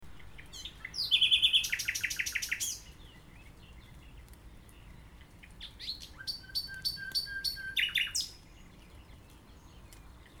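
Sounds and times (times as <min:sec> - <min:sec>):
Common nightingale song: 0:00.1 - 0:03.4, 0:05.6 - 0:10.3.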